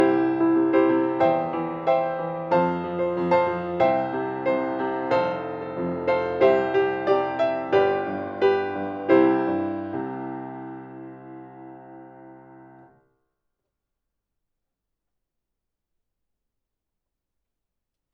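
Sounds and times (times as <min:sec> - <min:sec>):
piano: 0:00.0 - 0:13.0.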